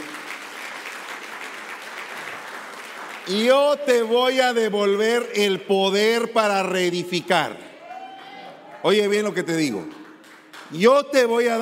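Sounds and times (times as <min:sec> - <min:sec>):
audience applauding: 0:00.0 - 0:03.9, 0:07.8 - 0:10.9
speech: 0:03.2 - 0:07.7, 0:08.8 - 0:10.0, 0:10.7 - 0:11.5.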